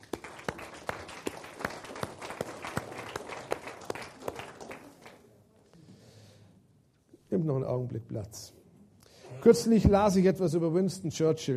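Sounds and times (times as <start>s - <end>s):
audience applauding: 0.0s - 5.3s
speech: 7.4s - 8.6s, 9.4s - 11.5s.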